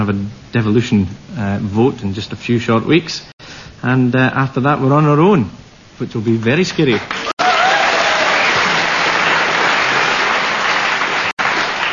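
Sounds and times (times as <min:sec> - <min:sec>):
speech: 0:00.1 - 0:07.2
audience round of applause: 0:07.1 - 0:11.9.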